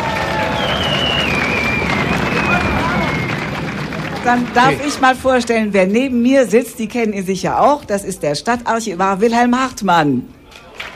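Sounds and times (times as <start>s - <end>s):
audience applause: 0.0s - 5.2s
speech: 4.2s - 10.4s.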